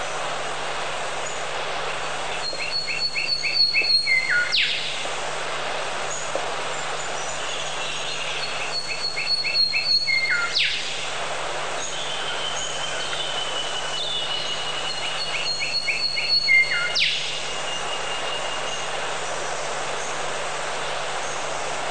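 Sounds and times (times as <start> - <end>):
background hiss: 0.0 - 21.8
bird whistles and chirps: 2.4 - 4.9, 7.6 - 10.8, 11.9 - 18.9.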